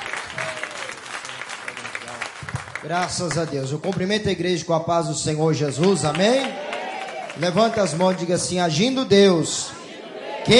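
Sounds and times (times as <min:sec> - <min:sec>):
standing church congregation applauding to welcome a preacher: 0:00.0 - 0:04.3, 0:05.5 - 0:09.0
speech: 0:02.8 - 0:06.6, 0:07.4 - 0:09.8.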